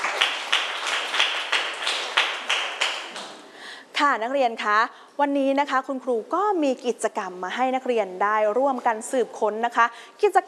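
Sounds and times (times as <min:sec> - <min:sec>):
students clapping: 0:00.0 - 0:03.5
speech: 0:04.0 - 0:10.4.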